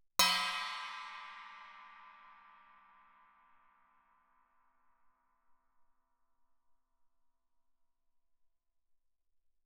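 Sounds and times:
Chinese stick bell played fortissimo: 0:00.2 - 0:02.8.

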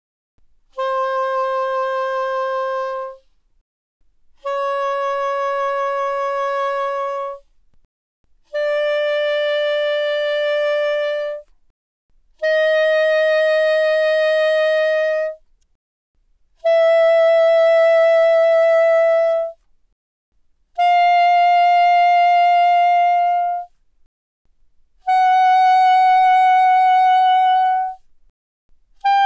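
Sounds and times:
soprano saxophone notes with vibrato played mezzo forte from C5 to B5: 0:00.7 - 0:03.2, 0:04.4 - 0:07.5, 0:08.5 - 0:11.5, 0:12.4 - 0:15.4, 0:16.6 - 0:19.6, 0:20.8 - 0:23.8, 0:25.0 - 0:28.1, 0:29.0 - 0:29.2.

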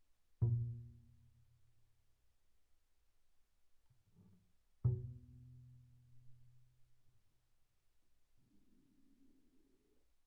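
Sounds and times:
double bass pizzicato on the A string, very soft: 0:00.4 - 0:01.5, 0:04.2 - 0:06.6.

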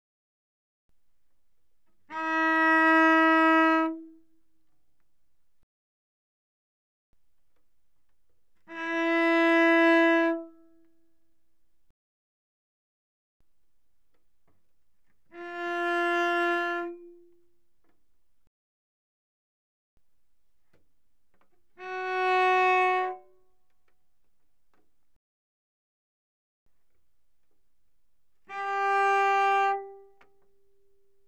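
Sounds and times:
cello bowed moderately loud on the G string: 0:01.9 - 0:04.5, 0:07.6 - 0:11.2, 0:15.0 - 0:18.0, 0:20.7 - 0:23.5, 0:28.2 - 0:31.2.

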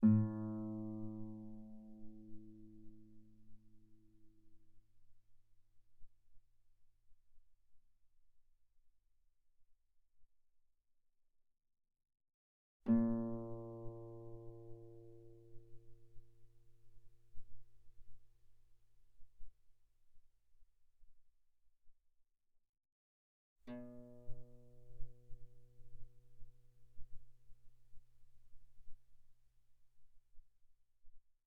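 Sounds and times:
pianissimo guitar notes on the A string: 0:00.0 - 0:03.3, 0:12.9 - 0:16.6, 0:23.7 - 0:27.2.

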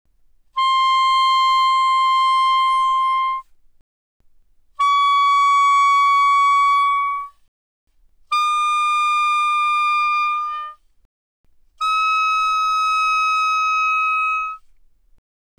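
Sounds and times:
soprano saxophone notes without vibrato: 0:00.5 - 0:03.5, 0:04.7 - 0:07.3, 0:08.3 - 0:10.8, 0:11.8 - 0:14.7.

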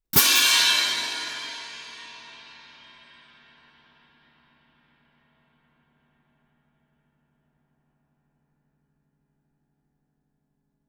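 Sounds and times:
loud orchestral crash cymbals: 0:00.2 - 0:03.6.

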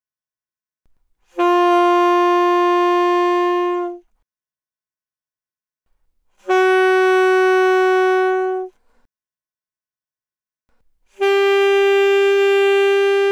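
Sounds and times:
alto saxophone notes without vibrato, fortissimo, C4 to B4: 0:01.3 - 0:04.1, 0:06.4 - 0:08.8, 0:11.2 - 0:13.3.

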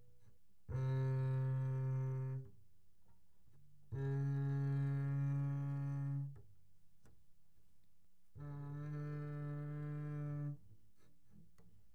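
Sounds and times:
double bass bowed pianissimo on the E string: 0:00.0 - 0:02.6, 0:03.5 - 0:06.6, 0:08.3 - 0:11.8.

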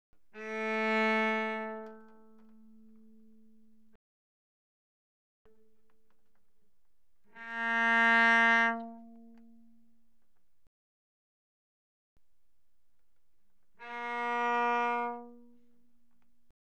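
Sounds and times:
bowed cello played very softly on the A string: 0:00.2 - 0:04.0, 0:05.5 - 0:10.7, 0:12.2 - 0:16.5.

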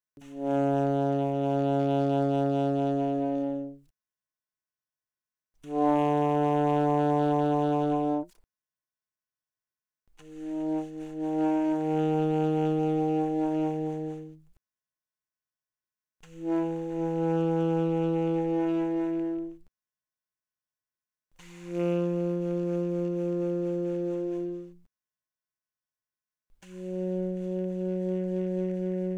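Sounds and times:
alto saxophone with vibrato played pianissimo: 0:00.2 - 0:03.9, 0:05.6 - 0:08.4, 0:10.2 - 0:14.6, 0:16.2 - 0:19.7, 0:21.4 - 0:24.9, 0:26.6 - 0:29.1.

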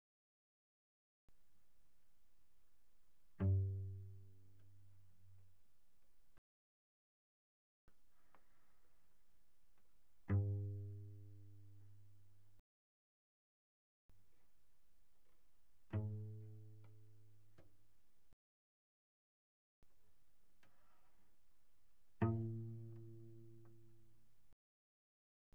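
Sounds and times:
cello pizzicato pianissimo on C string: 0:02.2 - 0:06.4, 0:07.9 - 0:12.6, 0:15.1 - 0:18.4, 0:20.5 - 0:24.6.

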